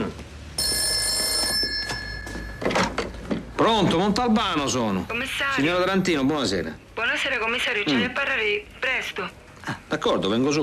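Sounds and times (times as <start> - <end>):
telephone bell ringing: 0.6 - 3.0
speech: 3.6 - 10.6.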